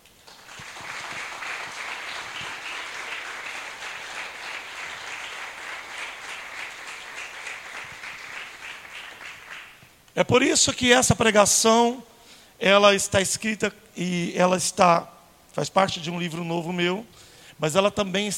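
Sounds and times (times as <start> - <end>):
audience applause: 0.2 - 9.9
speech: 10.2 - 18.3.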